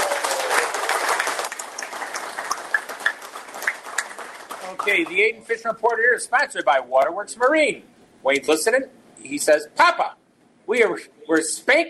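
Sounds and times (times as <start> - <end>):
audience applause: 0.0 - 5.2
speech: 4.9 - 11.8.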